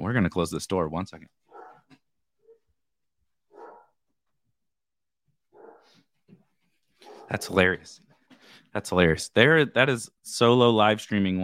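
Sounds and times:
speech: 0.0 - 1.5, 7.3 - 8.1, 8.7 - 11.4
dogs barking and yipping as someone comes to the door: 1.5 - 2.6, 3.5 - 4.0, 5.5 - 6.0, 7.0 - 7.6.

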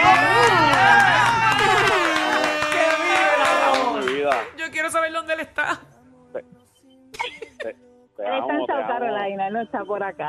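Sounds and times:
studio cheering: 0.0 - 4.5
studio applause: 0.0 - 4.6
speech: 7.6 - 10.2.

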